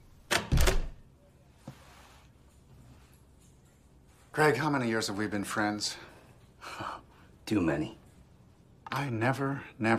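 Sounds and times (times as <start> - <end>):
door swinging shut: 0.3 - 1.0
speech: 4.4 - 6.1, 7.5 - 8.0, 8.9 - 9.9.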